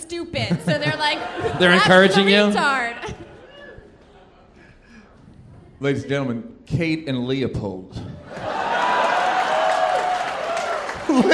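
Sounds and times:
speech: 0.1s - 3.2s, 5.8s - 8.6s, 11.1s - 11.3s
laughter: 0.4s - 5.2s, 10.9s - 11.3s
audience applause: 8.3s - 11.3s.

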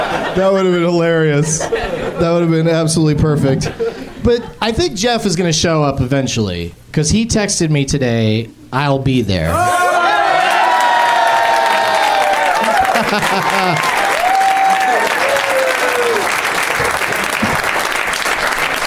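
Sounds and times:
laughter: 0.0s - 2.6s, 3.4s - 4.6s, 9.6s - 16.1s, 16.7s - 18.0s
speech: 0.4s - 9.8s, 13.1s - 13.9s
crowd cheering: 9.5s - 18.8s
audience applause: 9.9s - 18.8s.

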